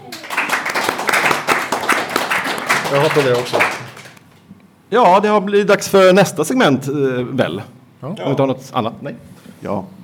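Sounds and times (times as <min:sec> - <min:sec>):
audience applause: 0:00.0 - 0:04.2
speech: 0:02.9 - 0:03.8, 0:04.9 - 0:10.0.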